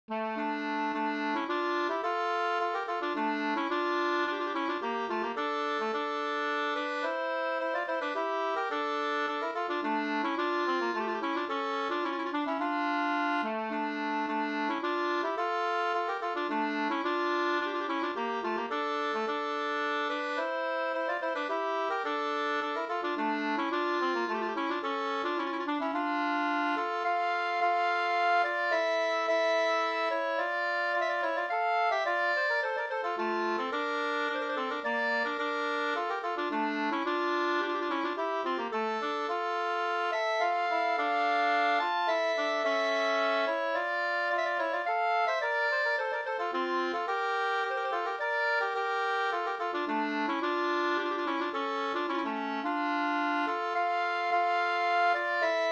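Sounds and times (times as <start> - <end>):
polska dance tune in D minor: 0.1 - 55.6.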